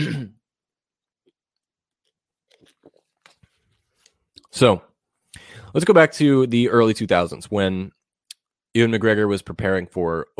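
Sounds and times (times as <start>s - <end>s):
person sipping water: 2.0s - 4.5s
speech: 4.6s - 4.9s, 5.7s - 8.0s, 8.8s - 10.3s.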